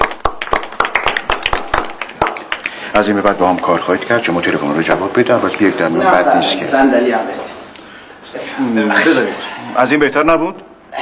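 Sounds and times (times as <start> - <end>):
audience clapping on cue: 0.0 - 4.5
speech: 3.0 - 7.6, 8.4 - 10.7.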